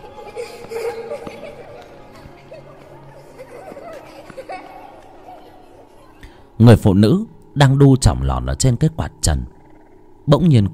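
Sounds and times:
two children laughing and playing: 0:00.0 - 0:06.6
speech: 0:06.6 - 0:09.6, 0:10.3 - 0:10.7.

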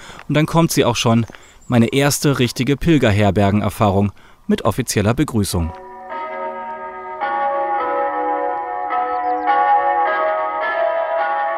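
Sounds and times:
speech: 0:00.3 - 0:05.8
recorded church bells chiming through loudspeakers of a church with no bell tower: 0:05.7 - 0:11.5.

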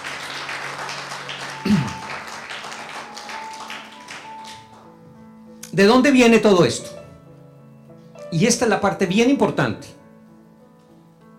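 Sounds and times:
audience applause: 0:00.0 - 0:04.9
speech: 0:05.8 - 0:07.0, 0:08.3 - 0:10.0.

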